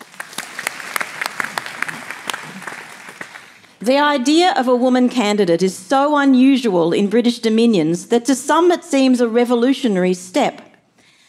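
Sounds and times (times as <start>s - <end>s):
audience applause: 0.0s - 3.7s
speech: 3.8s - 10.6s.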